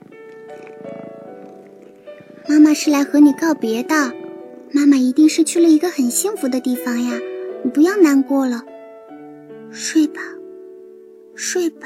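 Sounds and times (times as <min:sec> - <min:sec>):
kitten purring: 0:00.0 - 0:06.4
speech: 0:02.6 - 0:08.7, 0:09.7 - 0:10.4, 0:11.4 - 0:11.8.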